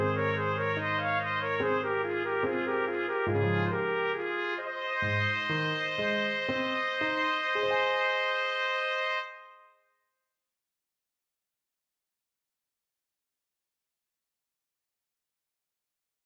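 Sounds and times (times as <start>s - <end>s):
trumpet duet: 0.0s - 9.7s.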